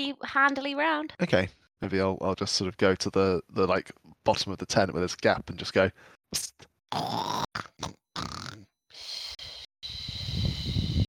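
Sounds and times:
speech: 0:00.0 - 0:09.2
voice imitating snoring: 0:06.9 - 0:09.4.

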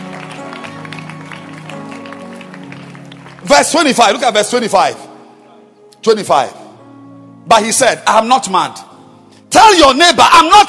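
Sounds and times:
audience clapping hands: 0:00.0 - 0:04.6
speech: 0:03.4 - 0:05.1, 0:06.0 - 0:06.6, 0:07.5 - 0:08.9, 0:09.5 - 0:10.6.

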